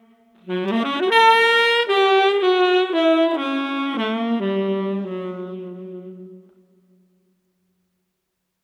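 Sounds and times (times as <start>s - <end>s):
street tenor saxophone playing: 0.0s - 6.7s.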